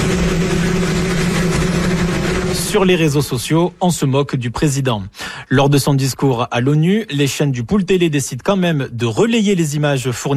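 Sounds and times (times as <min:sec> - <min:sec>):
helicopter noise: 0:00.0 - 0:03.8
person speaking outdoors: 0:02.6 - 0:10.3
speech: 0:02.8 - 0:10.3.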